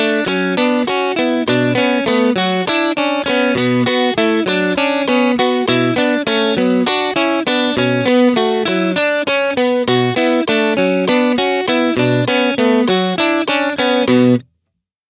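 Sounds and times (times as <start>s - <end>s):
guitar at 100 bpm: 0.0s - 14.5s.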